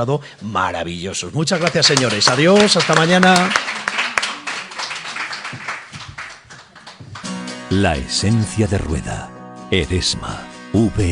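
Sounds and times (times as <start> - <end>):
speech: 0.0 - 3.8, 7.7 - 11.1
applause: 1.5 - 7.8.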